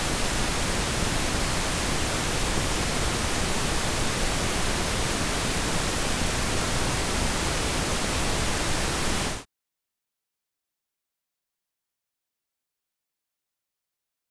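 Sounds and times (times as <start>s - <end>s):
pink noise: 0.2s - 9.4s.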